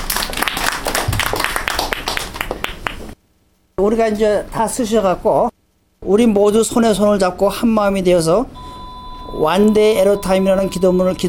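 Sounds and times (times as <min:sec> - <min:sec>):
audience applause: 0:00.0 - 0:03.0
speech: 0:03.8 - 0:11.2.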